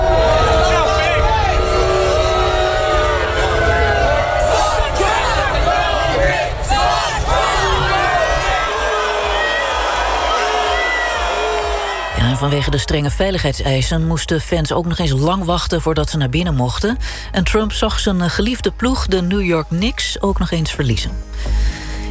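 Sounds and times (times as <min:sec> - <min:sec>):
crowd booing at basketball arena: 0:00.0 - 0:13.4
speech: 0:12.4 - 0:21.8.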